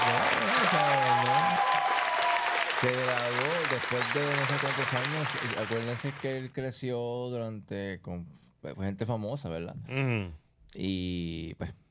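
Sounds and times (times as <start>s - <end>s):
audience applause celebrating a singer's graduation: 0.0s - 6.4s
speech: 2.8s - 11.8s.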